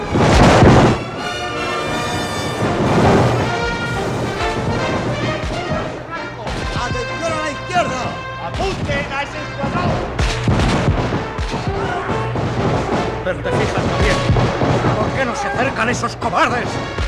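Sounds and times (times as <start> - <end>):
artillery blast, radio drama sound effect, Napoleonic-era battle: 0.0 - 1.6, 2.4 - 7.1, 8.0 - 15.3
continuous rumbling artillery bombardment: 0.0 - 17.0
voices over the bombardment: 5.2 - 10.2, 11.4 - 12.4, 13.1 - 16.9.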